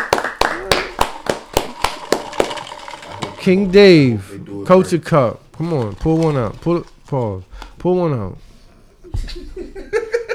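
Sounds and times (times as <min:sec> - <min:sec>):
hand clapping: 0:00.0 - 0:03.4
speech: 0:03.4 - 0:08.4
laughter: 0:09.1 - 0:10.3.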